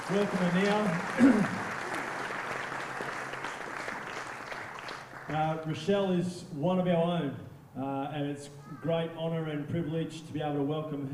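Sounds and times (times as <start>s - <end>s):
audience round of applause: 0.0s - 5.7s
speech: 0.1s - 1.7s, 5.3s - 11.1s.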